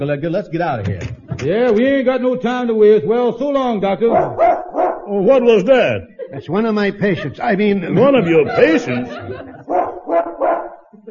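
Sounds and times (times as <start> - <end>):
speech: 0.0 - 4.5, 5.1 - 9.5
dog barking: 4.1 - 5.1, 9.6 - 10.9
laughter: 5.2 - 11.0.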